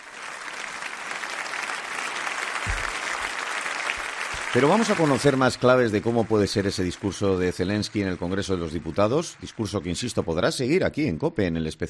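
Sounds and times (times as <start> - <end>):
crowd applause in a parliamentary chamber: 0.0 - 10.5
low thumps: 2.7 - 3.0
speech: 4.5 - 11.8.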